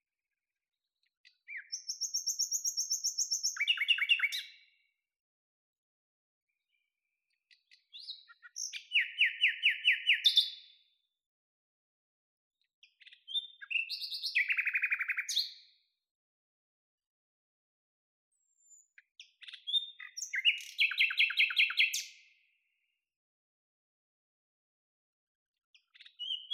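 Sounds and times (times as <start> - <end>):
Common nightingale song: 1.2 - 4.8, 7.5 - 10.7, 12.9 - 15.7, 18.3 - 22.4, 25.8 - 26.5.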